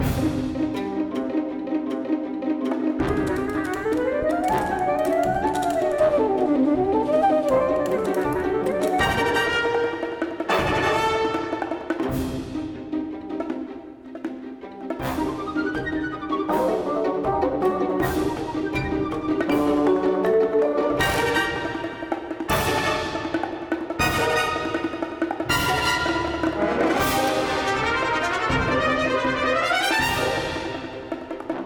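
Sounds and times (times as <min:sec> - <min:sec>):
frantic cinematic music: 0:00.0 - 0:31.6.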